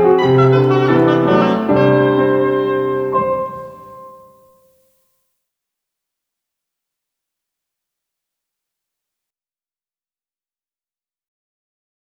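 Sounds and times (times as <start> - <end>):
oboe: 0.0 - 4.3
piano: 0.0 - 4.6.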